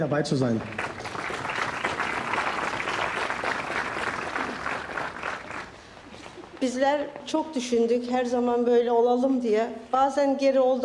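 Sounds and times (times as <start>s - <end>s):
speech: 0.0s - 0.8s, 6.6s - 10.8s
big round of audience applause at a public gathering: 0.3s - 6.4s.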